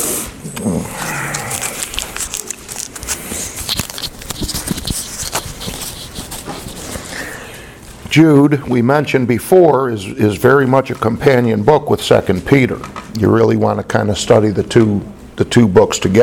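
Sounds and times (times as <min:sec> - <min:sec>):
speech: 0:00.6 - 0:01.1, 0:08.2 - 0:16.2
plastic wrapper of a cough drop crinkling while unwrapped: 0:01.0 - 0:07.9.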